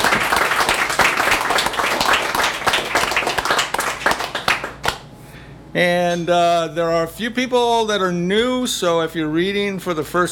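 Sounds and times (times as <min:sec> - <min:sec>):
audience applause: 0:00.0 - 0:05.0
speech: 0:05.8 - 0:10.3.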